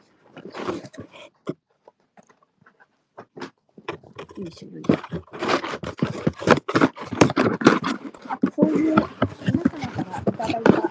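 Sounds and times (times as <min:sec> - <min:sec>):
packaging of gift parcels rustling and crinkling: 0:03.4 - 0:10.8
speech: 0:04.4 - 0:05.3.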